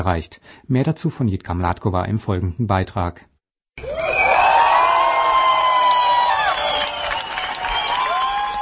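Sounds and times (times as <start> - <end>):
speech: 0.0 - 4.0
protest rally crowd cheering and shouting: 3.8 - 8.6.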